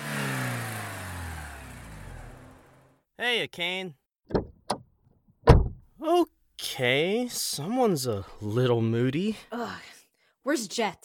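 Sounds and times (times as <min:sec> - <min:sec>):
car engine accelerating as the driver hits the gas: 0:00.0 - 0:03.0
speech: 0:03.2 - 0:04.4, 0:06.0 - 0:11.0.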